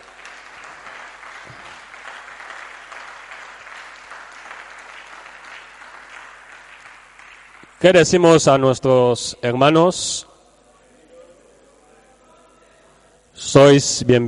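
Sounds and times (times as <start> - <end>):
audience applauding: 0.0 - 8.2
speech: 7.8 - 10.3, 13.5 - 14.2.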